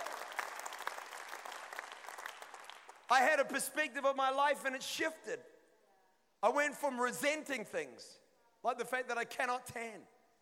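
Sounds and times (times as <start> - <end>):
audience clapping: 0.0 - 3.3
speech: 3.1 - 5.5, 6.4 - 10.2.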